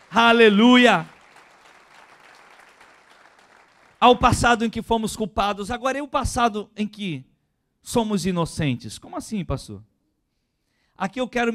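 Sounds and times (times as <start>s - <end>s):
audience applauding: 0.0s - 4.4s
speech: 0.1s - 1.1s, 4.0s - 9.9s, 11.0s - 11.5s.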